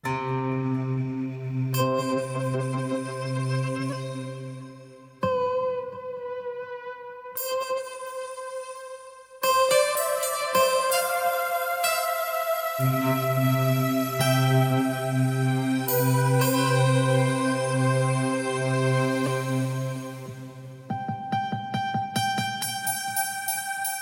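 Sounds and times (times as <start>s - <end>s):
guitar pad: 0.0s - 23.9s.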